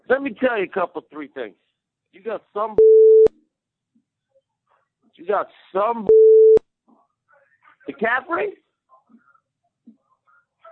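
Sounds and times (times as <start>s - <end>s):
voicemail speech: 0.0s - 1.6s, 2.2s - 2.8s, 6.9s - 10.7s
censor bleep over a voicemail: 2.8s - 3.3s, 6.1s - 6.6s.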